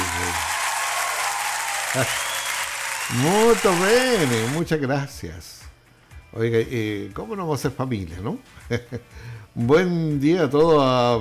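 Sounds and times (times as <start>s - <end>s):
applause on a radio program: 0.0s - 4.6s
speech: 1.9s - 2.3s, 3.1s - 5.6s, 6.3s - 11.1s.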